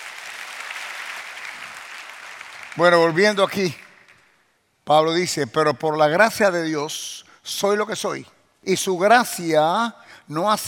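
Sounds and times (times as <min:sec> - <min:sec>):
congregation applauding in praise of Christ during a church sermon: 0:00.0 - 0:04.3
speech: 0:02.8 - 0:03.8, 0:04.9 - 0:10.6.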